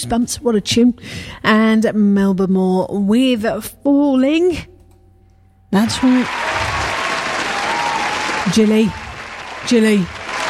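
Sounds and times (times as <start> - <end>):
speech: 0.0 - 4.7, 5.7 - 6.5, 8.4 - 9.0, 9.6 - 10.2
crowd clapping: 5.8 - 10.4.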